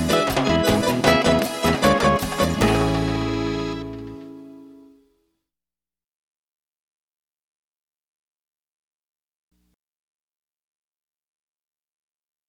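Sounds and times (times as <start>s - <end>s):
vallenato Spanish guitar playing: 0.0s - 5.1s.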